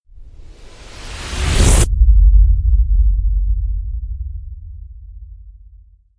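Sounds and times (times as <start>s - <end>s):
rising sweep: 0.1s - 5.0s
deep water impact hit: 1.4s - 6.0s.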